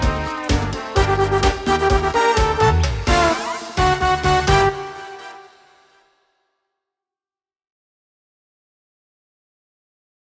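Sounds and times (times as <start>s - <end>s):
trombone: 0.0s - 6.0s.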